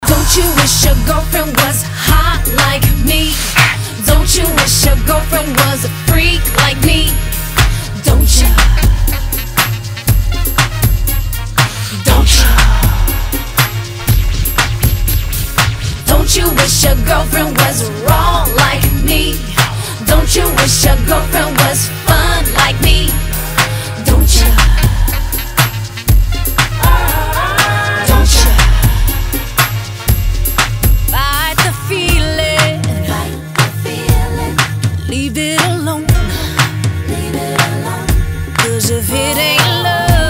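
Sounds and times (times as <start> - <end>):
music: 0.0 - 40.2.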